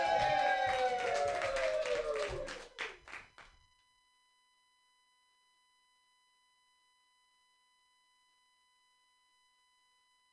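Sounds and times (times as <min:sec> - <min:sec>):
audience applause at an open mic comedy night: 0:00.0 - 0:03.5.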